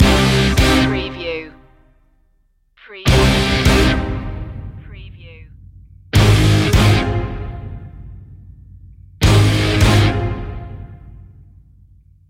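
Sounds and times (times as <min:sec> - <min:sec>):
heavy dramatic music loop: 0:00.0 - 0:01.8, 0:02.9 - 0:11.8.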